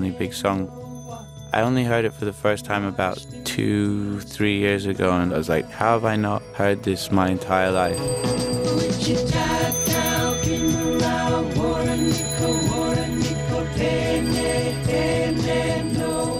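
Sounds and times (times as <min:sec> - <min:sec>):
speech: 0:00.0 - 0:11.8
bike bells ringing in a song: 0:00.7 - 0:04.3, 0:05.8 - 0:16.3.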